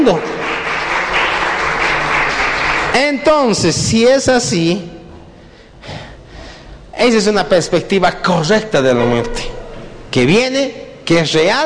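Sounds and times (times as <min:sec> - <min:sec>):
speech: 0:00.0 - 0:00.4, 0:03.0 - 0:05.0, 0:07.0 - 0:11.6
audience applause: 0:00.0 - 0:03.2.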